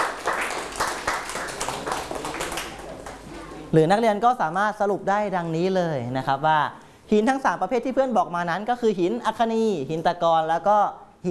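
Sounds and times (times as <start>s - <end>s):
classroom applause: 0.0s - 3.6s
speech: 3.7s - 11.3s.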